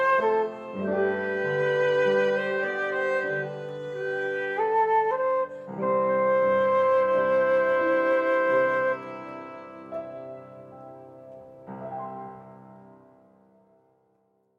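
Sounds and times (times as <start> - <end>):
violin: 0.0 - 12.6
flute: 0.0 - 13.2
piano: 0.0 - 14.5.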